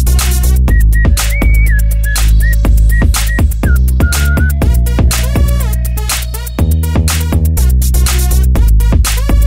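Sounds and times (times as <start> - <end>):
hip hop at four times speed: 0.1 - 9.4.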